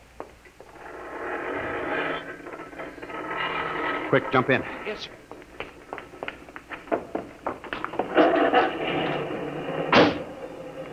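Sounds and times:
garage door being raised: 0.7s - 5.2s, 7.8s - 10.9s
speech: 4.1s - 5.3s.

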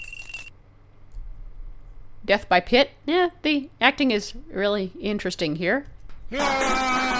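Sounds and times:
video game coin pickup chime: 0.0s - 0.5s
speech: 2.2s - 7.0s.

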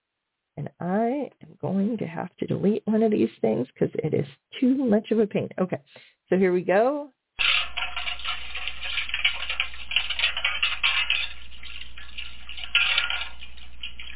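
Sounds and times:
speech: 0.6s - 7.2s
metal plates being washed in a metal tub on a wood stove: 7.4s - 14.1s
water splashing: 7.7s - 14.1s.

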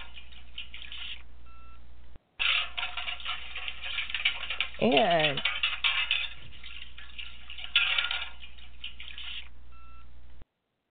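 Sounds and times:
dishes being washed: 0.0s - 1.2s, 2.4s - 9.6s
speech: 4.8s - 5.5s.

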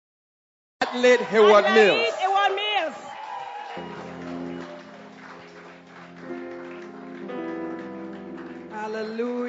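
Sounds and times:
audience clapping: 0.8s - 9.4s
speech: 0.9s - 2.6s, 8.9s - 9.4s.

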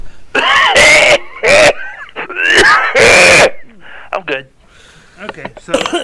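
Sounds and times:
cough: 0.4s - 3.7s, 5.7s - 6.0s
speech: 5.2s - 6.0s.

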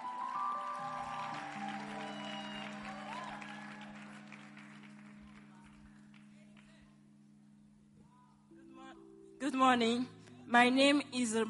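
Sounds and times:
audience applause: 0.0s - 6.2s
sustained music tones: 0.0s - 11.4s
speech: 9.4s - 11.4s.

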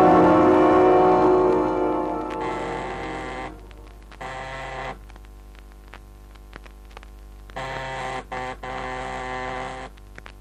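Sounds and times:
gold-plated door buzzer being pressed: 0.1s - 5.0s, 7.6s - 9.9s.

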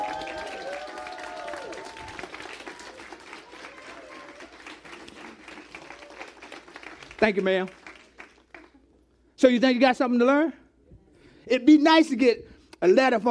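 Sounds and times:
audience clapping hands: 0.0s - 9.1s
speech: 7.2s - 7.8s, 9.4s - 10.6s, 11.5s - 13.3s.

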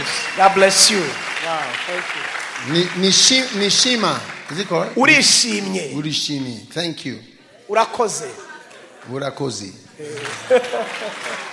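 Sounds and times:
audience clapping: 0.0s - 5.7s, 10.0s - 11.5s
speech: 0.4s - 8.4s, 9.0s - 11.5s
laughter: 8.4s - 9.4s, 10.0s - 11.5s.

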